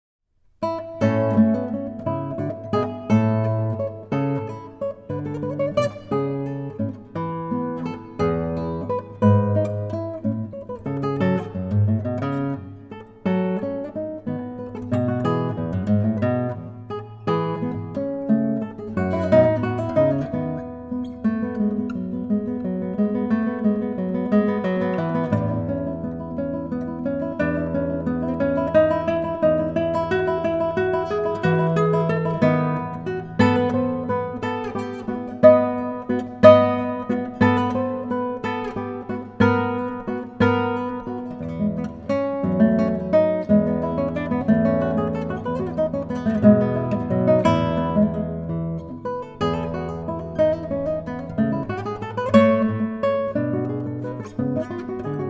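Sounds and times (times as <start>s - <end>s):
guitar: 0.4s - 55.2s.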